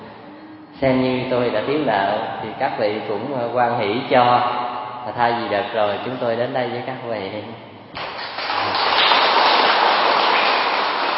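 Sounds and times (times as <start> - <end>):
speech: 0.8 - 8.0
audience applause: 8.0 - 11.1.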